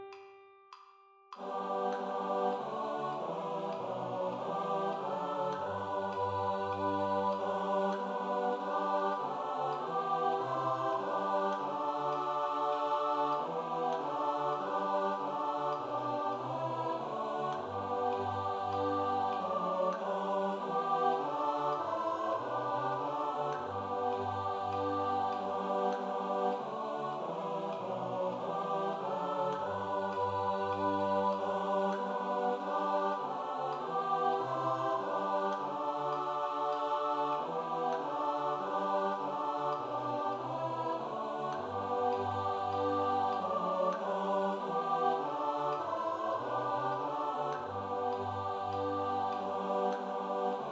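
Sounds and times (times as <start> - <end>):
SATB choir singing: 1.3 - 50.6.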